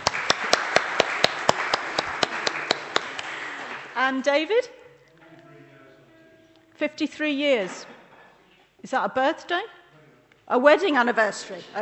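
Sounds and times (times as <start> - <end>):
audience clapping: 0.0 - 4.2
speech: 4.0 - 4.8, 6.8 - 8.0, 8.8 - 9.8, 10.5 - 11.8.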